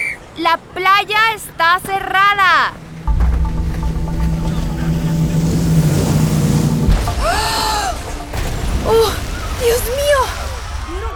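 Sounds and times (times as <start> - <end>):
speech: 0.4 - 2.8, 8.9 - 10.4
motorboat engine roaring: 1.8 - 9.6
wavering high-pitched squeal: 2.7 - 9.0.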